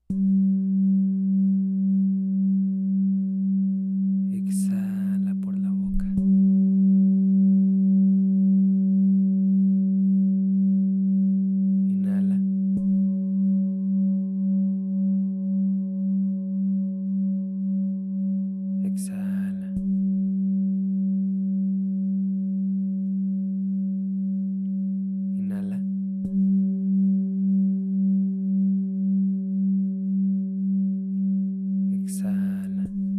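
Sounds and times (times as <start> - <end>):
singing bowl humming: 0.0 - 33.1.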